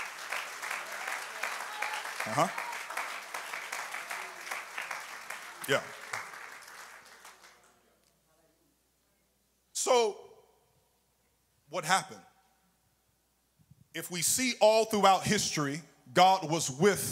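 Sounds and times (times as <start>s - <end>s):
audience clapping hands: 0.0s - 7.9s
speech: 2.2s - 2.7s, 5.7s - 6.0s, 9.8s - 10.2s, 11.8s - 12.3s, 14.0s - 17.1s.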